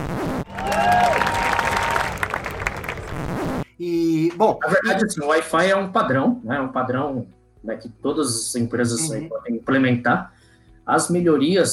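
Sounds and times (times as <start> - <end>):
applause from a small crowd: 0.5 - 3.6
speech: 4.4 - 11.7.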